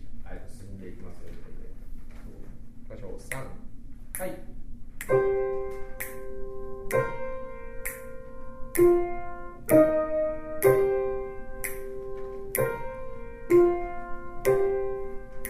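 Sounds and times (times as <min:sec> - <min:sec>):
speech: 0:03.0 - 0:03.6, 0:04.2 - 0:04.5
piano playing slow notes: 0:05.0 - 0:15.4.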